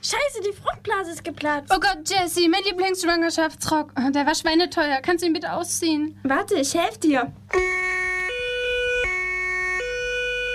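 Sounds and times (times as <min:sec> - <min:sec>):
speech: 0:00.0 - 0:07.8
ambulance siren two-tone wail: 0:07.5 - 0:10.5.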